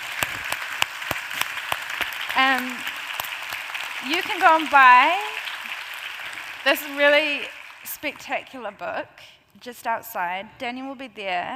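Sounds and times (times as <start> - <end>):
audience applause for Daniel: 0.0 - 8.6
speech: 4.0 - 5.4, 6.6 - 11.5.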